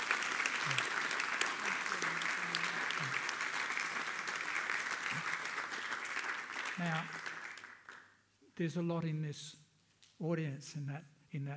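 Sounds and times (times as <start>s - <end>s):
audience applause for a couple: 0.0s - 8.1s
speech: 6.8s - 7.2s, 8.6s - 9.6s, 10.2s - 11.5s.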